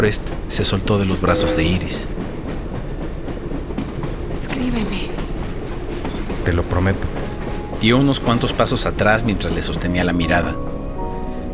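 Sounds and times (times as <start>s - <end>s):
speech: 0.0s - 2.3s, 4.4s - 5.2s, 6.4s - 7.2s, 7.8s - 10.7s
train rolling along the tracks: 0.0s - 11.3s
train wheels clattering: 2.0s - 8.8s.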